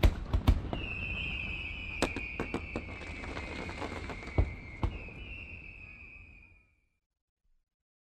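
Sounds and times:
firework launches: 0.0s - 6.6s.

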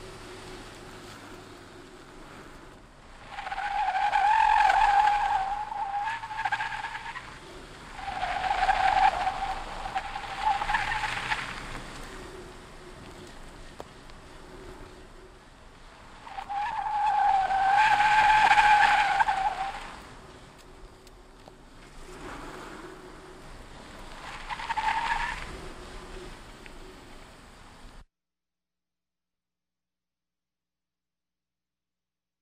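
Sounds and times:
car drifting carefully: 0.0s - 20.6s, 22.0s - 27.2s.

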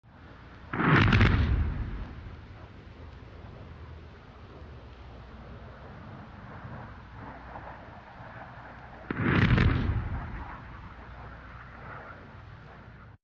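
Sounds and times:
bomb explosions on the ground: 0.7s - 4.7s, 8.4s - 12.4s.

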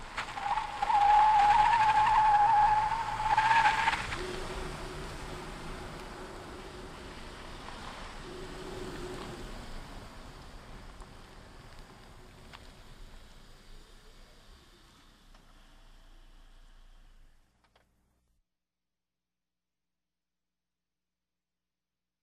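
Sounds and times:
car drifting: 0.0s - 10.4s.

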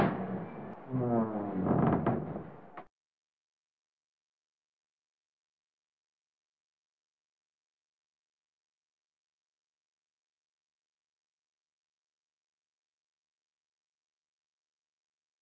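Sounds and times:
old ship creaking from the wind: 0.0s - 2.9s.

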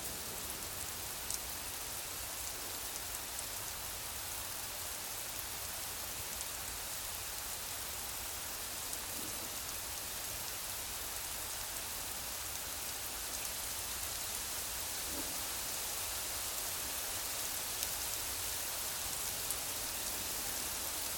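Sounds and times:
light drizzle rain: 0.0s - 21.1s.

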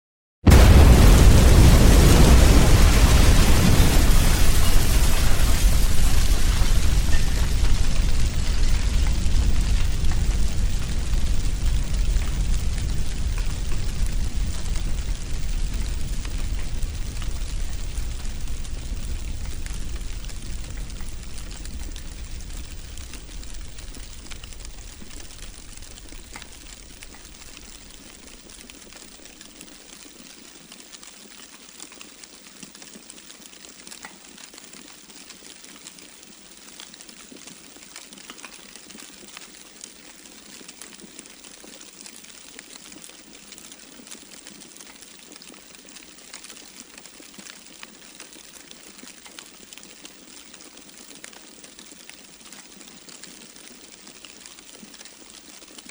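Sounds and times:
debris burning: 0.5s - 30.0s.

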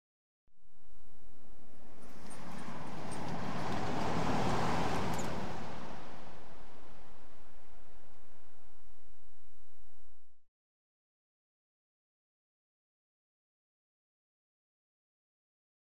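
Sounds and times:
vehicle passing softly: 1.7s - 9.1s.

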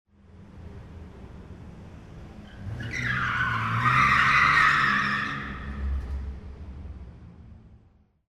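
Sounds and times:
car skidding on turns in an underground car park: 2.3s - 6.4s.

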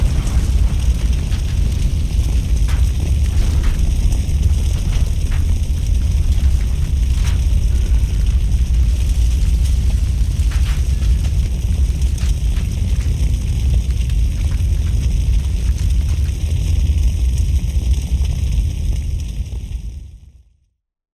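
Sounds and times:
explosions at a fire: 0.0s - 16.8s
fire burning: 0.0s - 20.4s.

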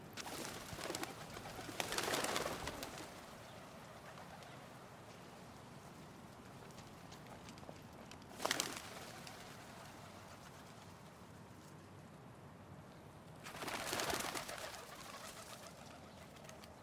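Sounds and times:
pigeons taking off in a park: 0.1s - 4.9s, 6.5s - 10.9s, 13.4s - 16.7s.

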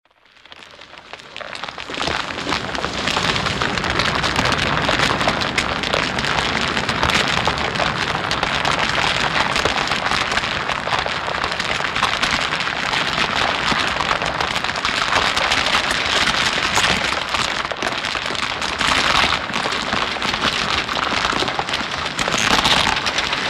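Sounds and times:
cracking: 0.1s - 23.4s.

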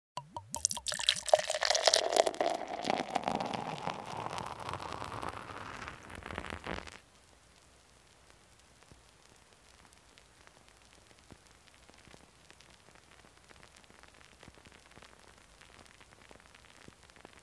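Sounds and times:
foam settling with bubbles: 0.4s - 7.0s.

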